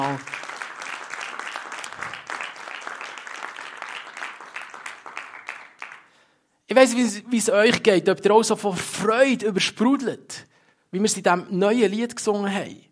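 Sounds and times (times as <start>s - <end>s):
speech: 0.0s - 0.4s, 6.8s - 12.9s
audience applause: 0.0s - 6.1s.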